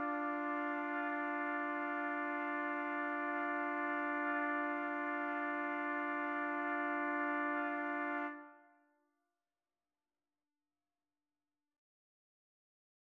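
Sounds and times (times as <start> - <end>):
trumpet trio playing: 0.0 - 8.4.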